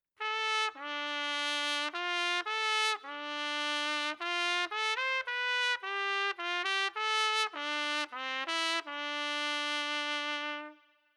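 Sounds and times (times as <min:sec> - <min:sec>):
trumpets: 0:00.2 - 0:11.1.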